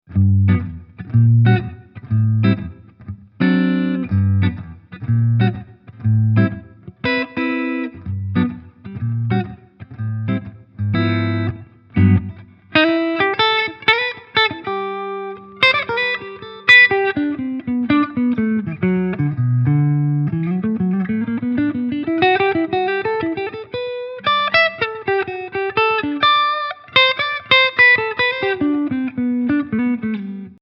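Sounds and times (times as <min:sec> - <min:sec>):
clean guitar tone on neck pickup: 0:00.1 - 0:30.5.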